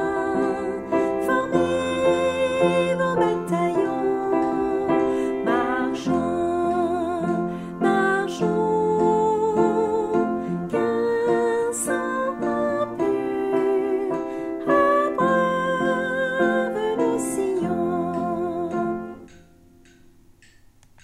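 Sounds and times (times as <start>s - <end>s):
soprano singing a national anthem: 0.0s - 19.5s.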